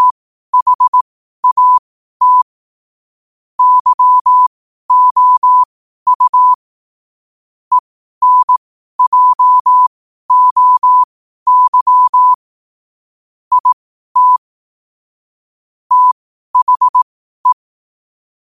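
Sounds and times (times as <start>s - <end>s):
morse code at 5 wpm: 0.0s - 2.4s, 3.6s - 6.6s, 7.7s - 12.4s, 13.5s - 14.4s, 15.9s - 17.6s.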